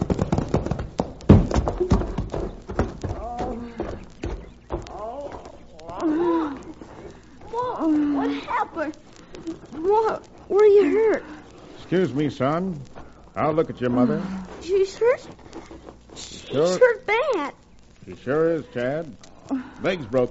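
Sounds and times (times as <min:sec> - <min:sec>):
horses' hooves galloping on a sun-baked road as a team pulls a wagon: 0:00.0 - 0:16.2
voices calling out: 0:01.8 - 0:20.0
speech: 0:11.9 - 0:15.4, 0:16.5 - 0:20.2.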